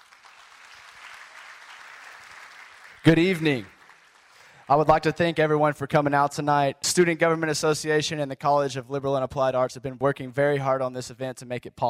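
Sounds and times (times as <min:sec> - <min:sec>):
audience applause at a college event: 0:00.0 - 0:04.9
speech: 0:03.0 - 0:03.7, 0:04.7 - 0:11.8.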